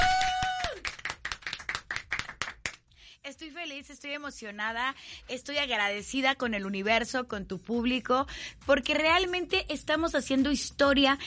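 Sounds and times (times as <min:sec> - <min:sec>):
applause: 0:00.0 - 0:02.9
speech: 0:03.6 - 0:11.2.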